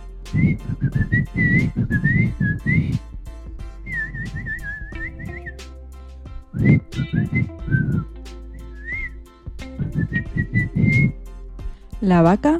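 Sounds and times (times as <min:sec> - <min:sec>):
person whistling warbling phrases imitating little birds: 0:00.3 - 0:03.0, 0:03.9 - 0:05.6, 0:06.6 - 0:09.2, 0:09.8 - 0:11.2.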